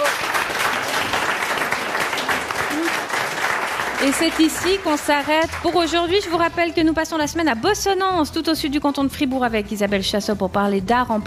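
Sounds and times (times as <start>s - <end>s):
audience applause: 0.0s - 5.9s
speech: 4.0s - 11.2s.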